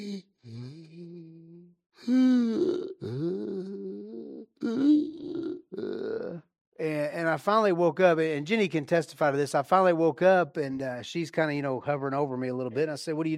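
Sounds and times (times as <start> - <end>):
voice imitating irregular breathing during sleep: 0.0 - 6.4
speech: 2.1 - 2.3, 7.4 - 13.3.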